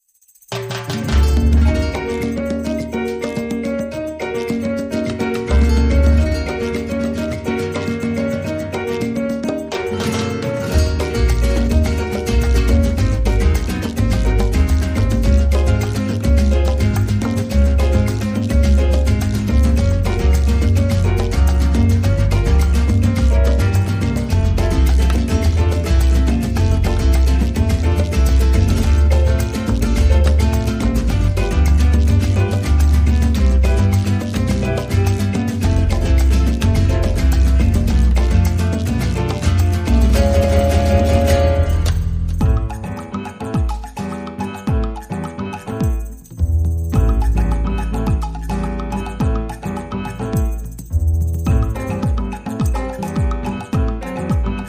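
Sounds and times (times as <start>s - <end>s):
salsa rhythm section: 0.1s - 54.6s.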